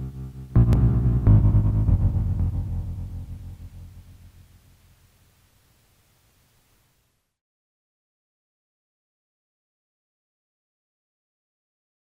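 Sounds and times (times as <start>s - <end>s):
Microfreak cello cloud engine synth: 0.0s - 4.8s.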